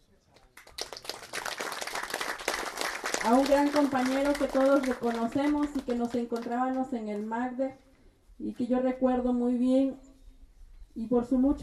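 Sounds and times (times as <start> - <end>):
audience applause: 0.5 - 6.4
speech: 3.2 - 7.8, 8.4 - 10.0, 11.0 - 11.6.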